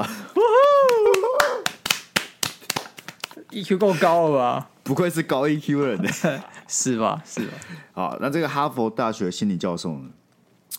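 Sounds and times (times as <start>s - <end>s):
sharp hand claps: 0.4s - 3.4s
speech: 3.5s - 10.7s.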